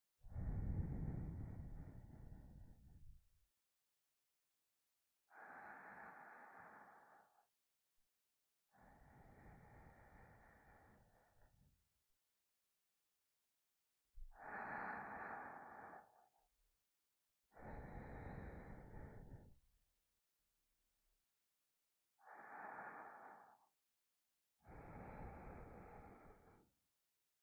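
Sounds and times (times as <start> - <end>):
sleeping breath in the left ear: 0.3 - 3.1, 5.3 - 7.5, 8.7 - 11.7, 14.2 - 16.4, 17.5 - 19.6, 22.2 - 23.8, 24.6 - 26.8.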